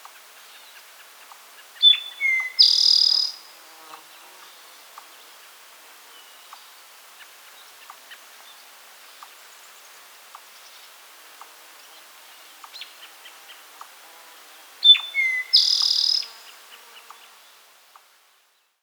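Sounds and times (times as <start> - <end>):
Eastern Towhee Pipilo erythrophthalmus calling: 1.8 - 3.4, 14.8 - 16.4.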